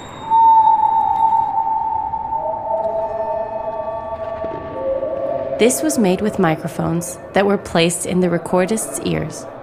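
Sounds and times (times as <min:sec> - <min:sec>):
people testing echoing acoustics inside a dome with vocal tones: 0:00.0 - 0:09.6
speech: 0:05.6 - 0:09.5.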